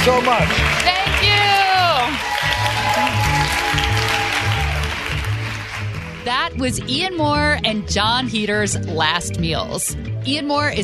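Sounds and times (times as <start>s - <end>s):
speech: 0.0s - 1.0s, 6.2s - 10.8s
round of applause: 0.0s - 6.3s.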